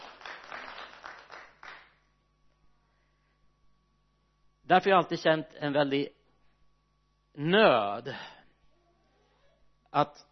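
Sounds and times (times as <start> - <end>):
audience applause: 0.0 - 1.9
speech: 4.7 - 6.2, 7.4 - 8.4, 9.9 - 10.2.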